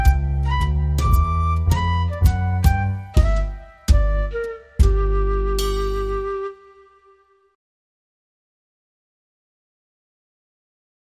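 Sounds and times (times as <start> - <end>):
solo flute: 0.0 - 7.6.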